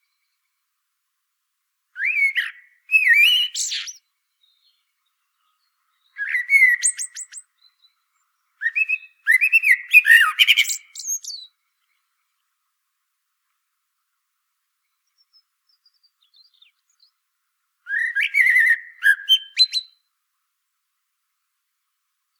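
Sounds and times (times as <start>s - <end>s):
common blackbird singing: 2.0s - 8.0s, 8.6s - 11.5s, 15.0s - 17.2s, 17.9s - 20.0s.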